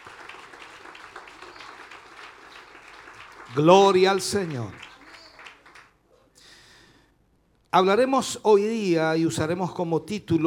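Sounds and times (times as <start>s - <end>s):
audience applauding in praise: 0.0s - 6.0s
speech: 3.5s - 4.8s, 7.7s - 10.4s.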